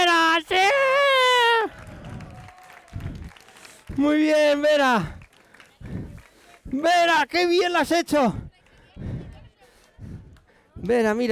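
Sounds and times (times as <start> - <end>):
audience applause and cheering: 0.9 - 6.6
speech: 4.0 - 5.2, 6.7 - 8.4, 10.8 - 11.3.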